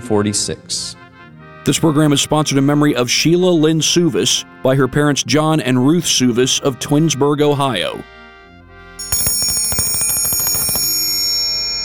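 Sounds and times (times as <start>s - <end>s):
speech: 0.0s - 1.0s, 1.6s - 8.2s
bell ringing as a come-and-eat call: 9.0s - 11.8s.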